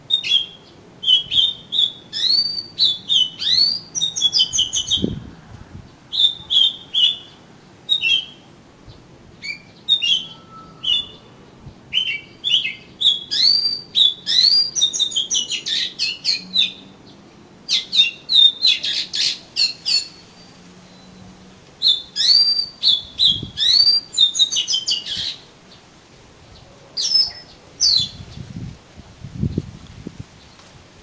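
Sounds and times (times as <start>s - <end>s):
Oriental magpie-robin whistling song: 0.0s - 5.2s, 6.1s - 8.4s, 9.4s - 16.9s, 17.7s - 25.4s, 27.0s - 28.5s.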